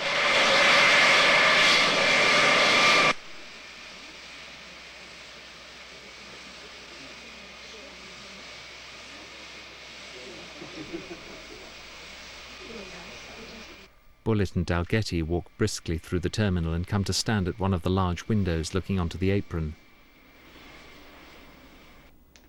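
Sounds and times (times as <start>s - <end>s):
airplane engine roar while taxiing back to the terminal: 0.0s - 22.1s
laughter: 10.3s - 12.1s
low continuous hum: 13.4s - 22.4s
speech: 14.3s - 19.8s.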